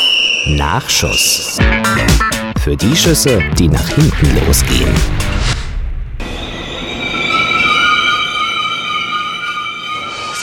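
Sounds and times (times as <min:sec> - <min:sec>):
speech: 0:00.5 - 0:05.6
train rumbling: 0:03.8 - 0:09.6
burst of noise: 0:04.2 - 0:07.9
train wheels squealing: 0:06.2 - 0:10.4.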